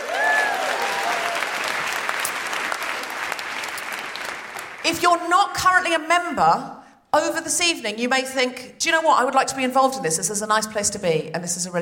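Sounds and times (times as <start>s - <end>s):
whoops and cheers: 0.0s - 1.9s
audience applause: 0.0s - 4.9s
speech: 4.9s - 11.8s.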